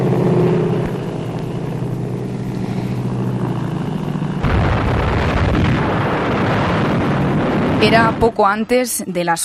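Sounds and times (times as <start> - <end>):
low droning roar in archival air raid recording: 0.0 - 8.4
explosions and gunfire in archival air raid recording: 4.4 - 8.5
speech: 7.8 - 9.4.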